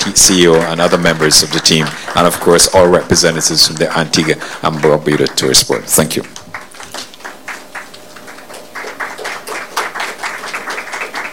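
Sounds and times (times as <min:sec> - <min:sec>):
audience applause: 0:00.0 - 0:11.3
speech: 0:00.1 - 0:06.4.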